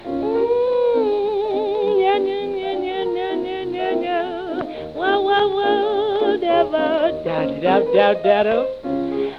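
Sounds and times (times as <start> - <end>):
scat singing: 0.0 - 9.3.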